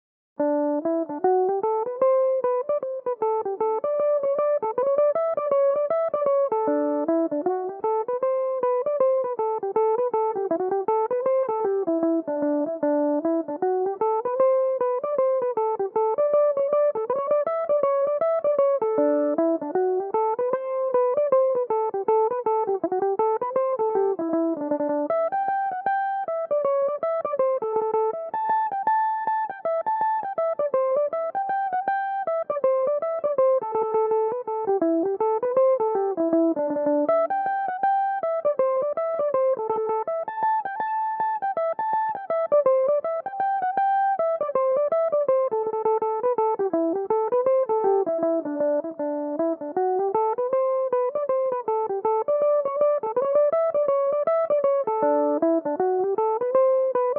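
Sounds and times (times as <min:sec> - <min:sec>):
Irish mandolin tune: 0:00.4 - 0:57.1.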